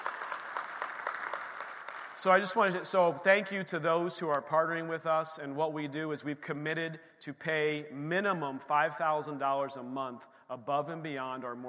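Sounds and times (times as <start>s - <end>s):
audience clapping: 0.0s - 3.0s
speech: 2.2s - 11.6s.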